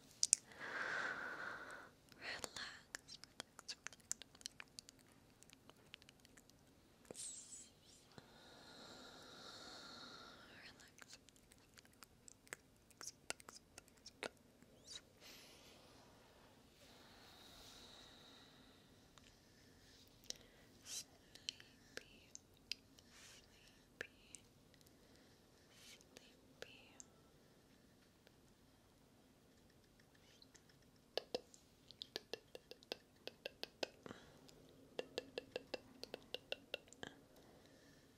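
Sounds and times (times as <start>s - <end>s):
faint steady low hum: 0.0s - 38.1s
mouth sounds and tongue clicking: 0.2s - 0.4s, 2.9s - 6.6s, 10.9s - 15.0s, 29.6s - 37.1s
quiet breathy hiss: 0.4s - 2.9s, 7.1s - 10.8s, 15.2s - 22.2s.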